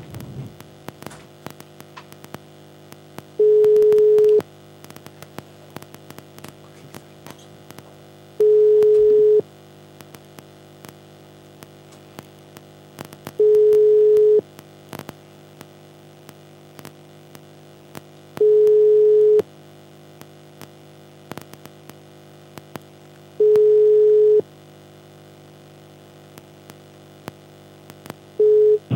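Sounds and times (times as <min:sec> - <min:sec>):
telephone ringback tone, call going unanswered: 0:03.4 - 0:04.4, 0:08.4 - 0:09.4, 0:13.4 - 0:14.4, 0:18.4 - 0:19.4, 0:23.4 - 0:24.4, 0:28.4 - 0:28.8.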